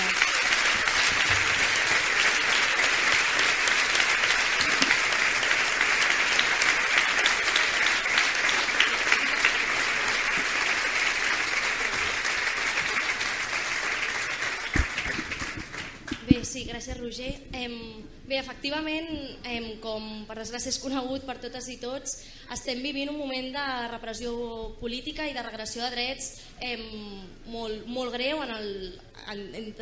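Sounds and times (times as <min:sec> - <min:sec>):
audience applause: 0:00.0 - 0:16.4
speech: 0:17.1 - 0:29.8.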